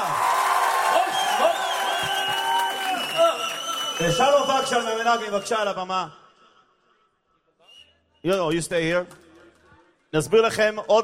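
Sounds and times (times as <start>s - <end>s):
applause: 0.0s - 5.6s
audience cheering: 0.0s - 5.7s
speech: 4.0s - 6.2s, 8.2s - 9.2s, 10.1s - 11.0s.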